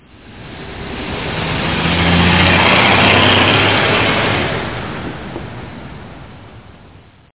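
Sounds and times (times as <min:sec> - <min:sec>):
traffic: 0:00.0 - 0:07.3.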